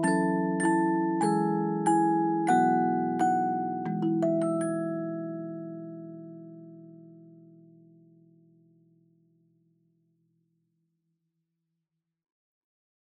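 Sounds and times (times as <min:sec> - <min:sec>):
fast dry nursery rhyme melody: 0:00.0 - 0:07.3.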